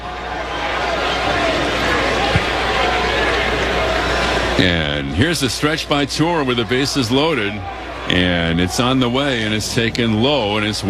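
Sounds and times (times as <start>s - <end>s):
buzz of baseball stadium crowd of Mariner fans: 0.0s - 10.8s
laughter: 0.0s - 10.8s
speech: 4.6s - 10.8s.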